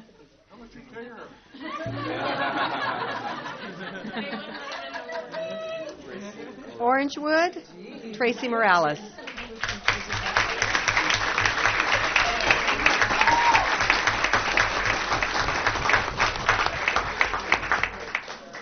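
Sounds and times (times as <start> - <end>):
speech: 0.7 - 3.0, 6.8 - 9.2
laughter: 1.5 - 6.8, 9.0 - 15.6
crowd applauding and cheering: 4.6 - 6.1, 9.3 - 18.6.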